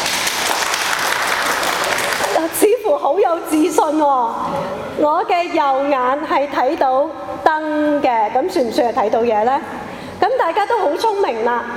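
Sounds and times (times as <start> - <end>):
audience clapping in answer to a show host's question: 0.0 - 2.6
speech: 3.1 - 11.7.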